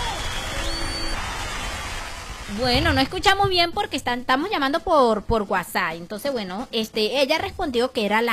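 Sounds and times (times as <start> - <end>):
applause: 0.0 - 2.7
speech: 2.5 - 8.3.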